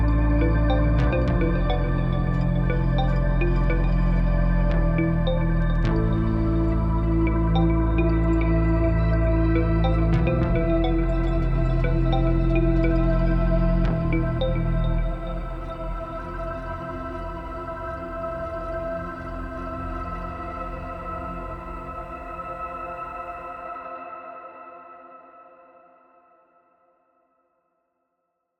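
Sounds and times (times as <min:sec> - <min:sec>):
old DN synthesizer patterns: 0:00.0 - 0:15.9
Microfreak synthesizer layered on top: 0:00.0 - 0:22.0.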